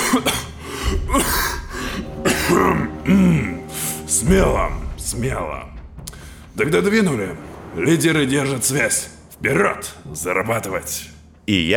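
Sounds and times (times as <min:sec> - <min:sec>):
man coughing and throat clearing imitated by a performer: 0:00.0 - 0:03.0
speech: 0:00.1 - 0:00.4, 0:04.2 - 0:05.8, 0:06.6 - 0:11.7.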